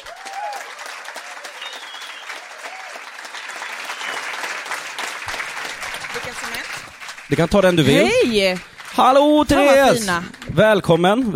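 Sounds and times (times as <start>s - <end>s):
faint whoops and cheers: 0.0s - 4.3s
audience applause: 0.0s - 11.3s
speech: 6.2s - 11.3s.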